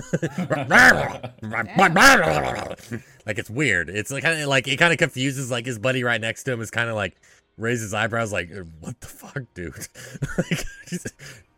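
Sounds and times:
laughter: 0.0 - 3.0, 9.6 - 11.4
speech: 0.0 - 11.5
person imitating wolf growling: 0.6 - 2.8.

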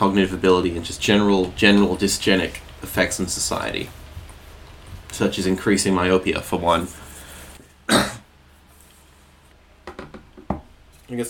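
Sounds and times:
speech: 0.0 - 4.0, 5.1 - 7.0
man clearing his throat: 7.9 - 8.2.

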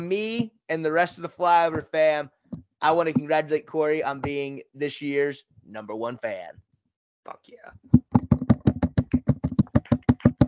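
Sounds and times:
speech: 0.0 - 6.6, 7.2 - 8.0
hosts clapping hands: 8.1 - 10.4.

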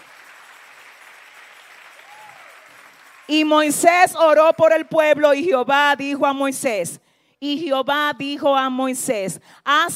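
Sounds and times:
audience applauding loudly: 0.0 - 3.5
speech: 3.3 - 9.9.

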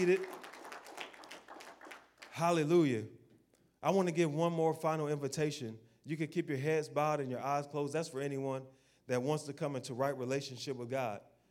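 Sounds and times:
speech: 0.0 - 0.4, 2.4 - 3.2, 3.8 - 11.3
crowd clapping: 0.0 - 2.7.

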